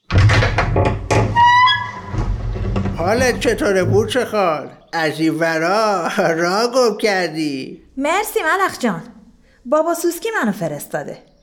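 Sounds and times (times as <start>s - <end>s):
knocking on a house door: 0.0s - 4.4s
speech: 3.0s - 11.3s.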